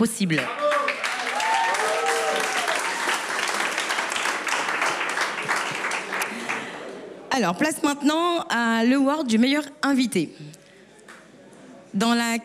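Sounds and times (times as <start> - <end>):
speech: 0.0 - 0.6, 7.4 - 10.6, 11.9 - 12.4
audience applause: 0.4 - 7.0.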